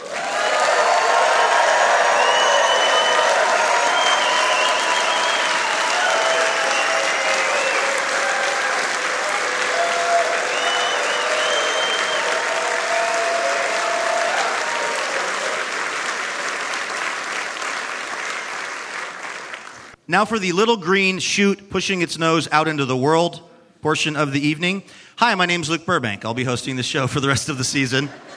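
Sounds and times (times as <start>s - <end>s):
faint scattered cheers: 0.0s - 15.8s
audience applause: 0.0s - 20.0s
speech: 20.1s - 28.3s.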